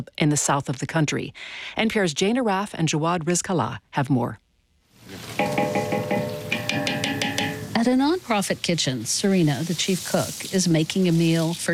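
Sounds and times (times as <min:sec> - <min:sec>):
speech: 0:00.0 - 0:04.4, 0:07.9 - 0:11.7
slivered almonds sautéing in margarine in a huge aluminum pot outdoors: 0:05.0 - 0:11.7.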